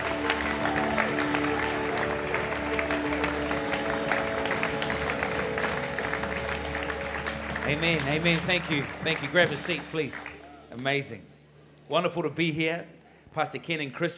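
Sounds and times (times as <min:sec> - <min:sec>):
crowd noise: 0:00.0 - 0:10.8
church congregation in Perth, Australia applauding to welcome a guest pastor: 0:00.0 - 0:11.0
speech: 0:07.7 - 0:11.3, 0:11.9 - 0:14.1.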